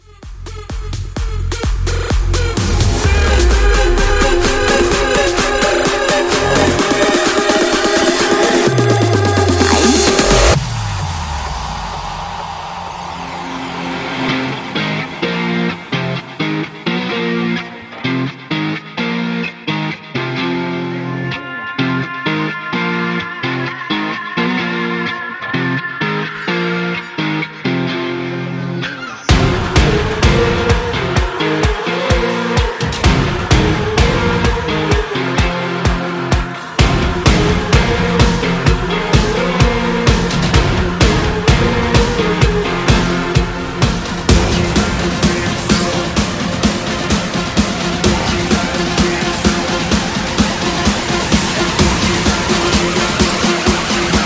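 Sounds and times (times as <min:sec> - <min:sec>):
festival music at 128 BPM: 0:00.0 - 0:54.2.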